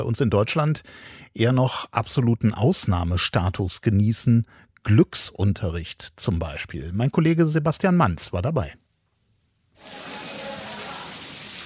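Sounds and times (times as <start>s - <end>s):
speech: 0.0s - 8.8s
monsoon rain splashing outside the windows: 9.8s - 11.6s.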